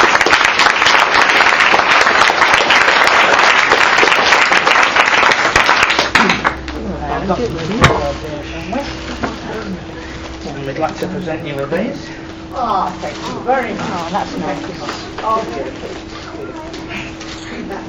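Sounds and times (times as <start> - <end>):
round of applause: 0.0 - 6.7
speech: 7.3 - 8.0, 10.8 - 16.1.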